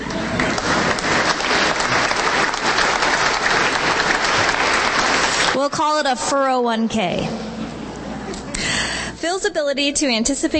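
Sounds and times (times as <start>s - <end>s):
round of applause: 0.0s - 5.6s
speech: 5.7s - 7.6s, 9.3s - 10.5s.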